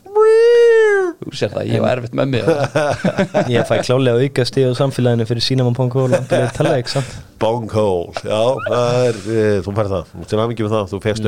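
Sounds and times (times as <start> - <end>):
person imitating a cat meow: 0.0 - 1.2
speech: 1.3 - 11.2
laughter: 2.3 - 4.0, 6.0 - 7.2, 8.4 - 9.3.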